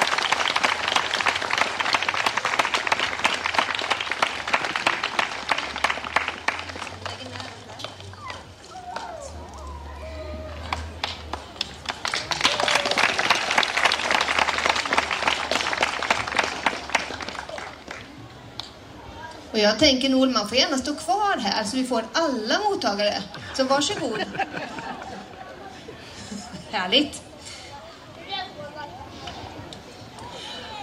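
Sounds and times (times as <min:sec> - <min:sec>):
audience applause for award recipient: 0:00.0 - 0:07.8, 0:10.5 - 0:18.2
speech: 0:19.6 - 0:24.4, 0:26.8 - 0:27.2.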